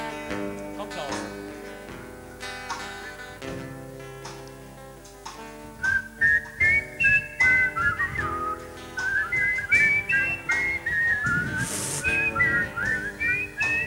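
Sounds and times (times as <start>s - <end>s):
person whistling a lively melody during a live band performance in Koblenz: 5.8s - 13.8s.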